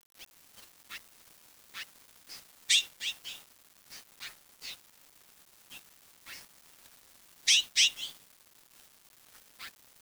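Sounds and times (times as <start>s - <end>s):
bird giving high thin chirps: 2.7s - 3.4s, 7.5s - 8.2s.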